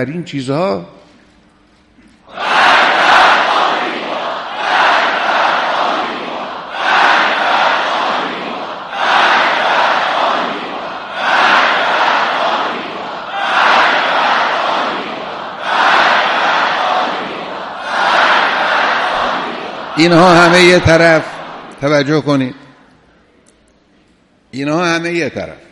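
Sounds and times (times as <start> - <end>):
speech: 0.0 - 1.0, 20.0 - 22.6, 24.6 - 25.7
crowd shouting slogans: 2.3 - 21.8.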